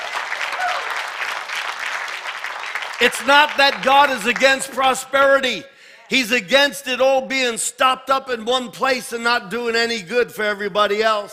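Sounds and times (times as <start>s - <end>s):
audience cheering and applauding: 0.0s - 5.4s
speech: 3.0s - 11.3s.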